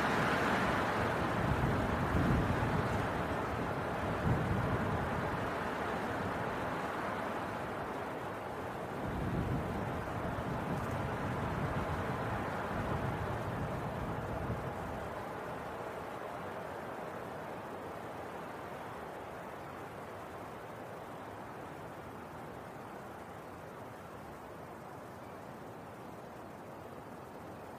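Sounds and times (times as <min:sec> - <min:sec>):
winter wind storm roaring: 0:00.0 - 0:21.1.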